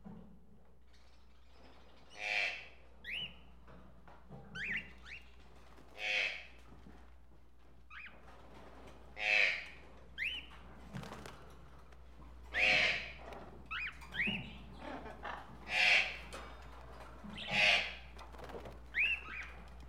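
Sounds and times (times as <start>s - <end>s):
tropical birds squawking and whistling: 1.5s - 3.4s, 4.6s - 6.5s, 9.2s - 10.6s, 12.4s - 16.4s, 17.2s - 19.8s.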